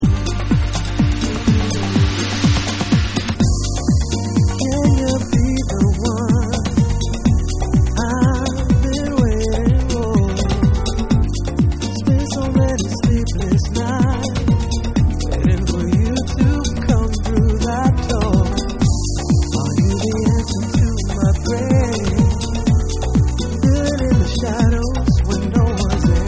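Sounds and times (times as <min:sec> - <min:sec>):
alternate vocal: 0:00.0 - 0:26.2.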